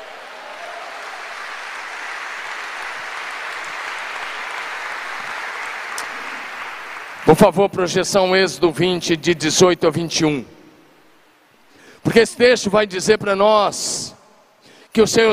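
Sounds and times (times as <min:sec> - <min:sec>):
crowd applauding: 0:00.0 - 0:07.5
speech: 0:07.3 - 0:10.6, 0:12.1 - 0:14.2, 0:14.9 - 0:15.3.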